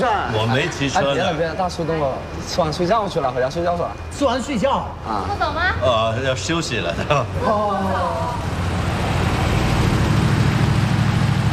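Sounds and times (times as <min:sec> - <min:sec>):
speech: 0:00.3 - 0:08.5
Mercedes G-Class SUV engine rumble approaching: 0:05.4 - 0:11.5.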